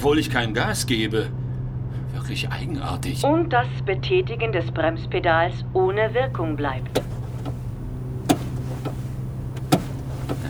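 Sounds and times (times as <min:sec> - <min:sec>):
speech: 0:00.0 - 0:01.4, 0:02.2 - 0:07.2
car door locks snapping shut: 0:06.0 - 0:10.4.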